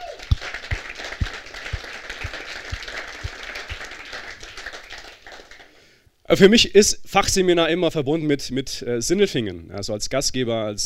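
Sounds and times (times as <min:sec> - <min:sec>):
crowd applause: 0:00.0 - 0:05.8
low rhythmic thumps: 0:00.3 - 0:04.0
speech: 0:06.3 - 0:10.8.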